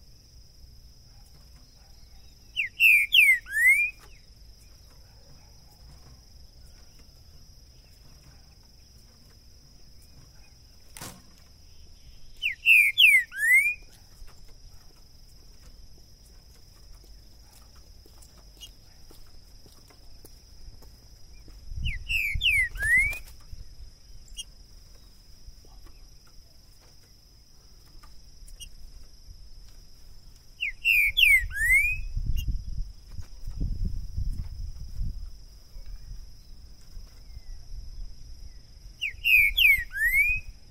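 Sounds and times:
green-winged saltator whistled song: 0:02.5 - 0:04.1, 0:12.4 - 0:13.9, 0:21.8 - 0:23.3, 0:30.6 - 0:32.5, 0:39.0 - 0:40.6.

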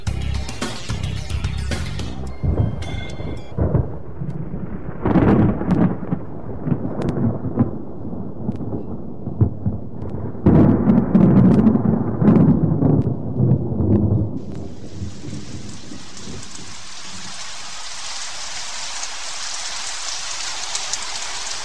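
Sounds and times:
steady hiss of rain: 0:00.0 - 0:06.1, 0:14.4 - 0:21.6
deep rolling thunder rumbling: 0:01.7 - 0:21.6.

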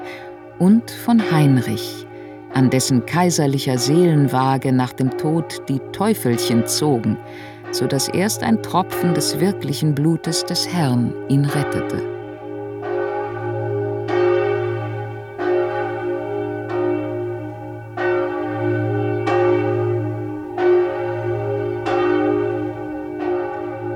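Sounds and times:
large cathedral bell tolling: 0:00.0 - 0:23.9
speech: 0:00.6 - 0:12.2.

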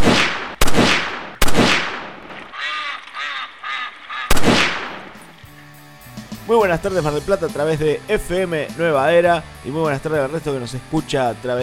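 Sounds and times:
loud gunshot blasts with decays, comic sound effect: 0:00.0 - 0:02.5, 0:04.3 - 0:05.3
nasal reedy duck quacks, comic sound effect: 0:02.5 - 0:04.5
speech: 0:06.5 - 0:11.6.

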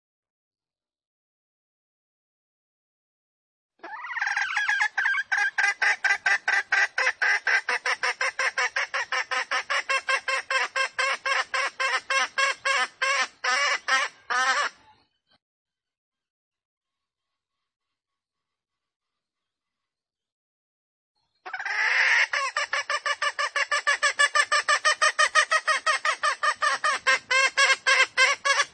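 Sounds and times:
female junglefowl squawking lure call: 0:03.8 - 0:14.9, 0:21.5 - 0:28.7.

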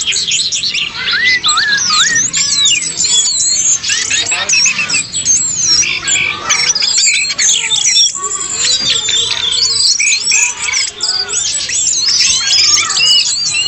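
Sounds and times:
bird song: 0:00.0 - 0:13.6.

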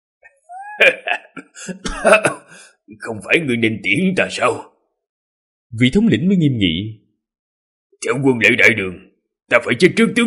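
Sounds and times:
person laughing: 0:00.5 - 0:02.5
violent coughing fit: 0:00.8 - 0:02.8
speech: 0:00.8 - 0:04.7, 0:05.7 - 0:07.0, 0:08.0 - 0:10.2.

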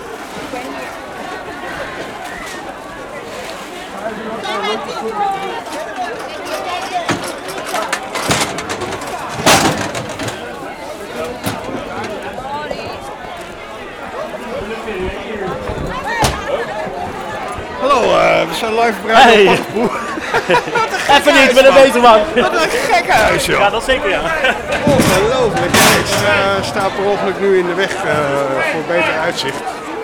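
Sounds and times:
busy crowd chatter at Anton de Komplein outdoor square: 0:00.0 - 0:30.0
speech: 0:04.6 - 0:05.9, 0:18.0 - 0:29.7
sharp clacks and thumps: 0:07.1 - 0:12.4, 0:15.0 - 0:17.9, 0:24.3 - 0:27.2
laughter: 0:14.4 - 0:29.5.

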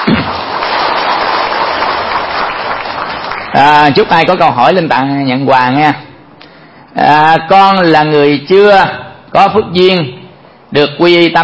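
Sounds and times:
audience applause at a Buddhist dharma talk: 0:00.0 - 0:03.9
speech: 0:03.6 - 0:06.0, 0:06.9 - 0:11.4.

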